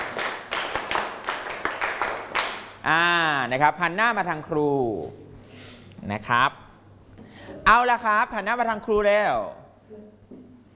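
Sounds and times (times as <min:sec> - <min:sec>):
students clapping in rhythm: 0:00.0 - 0:02.8
speech: 0:02.8 - 0:05.2, 0:06.0 - 0:06.6, 0:07.7 - 0:10.2.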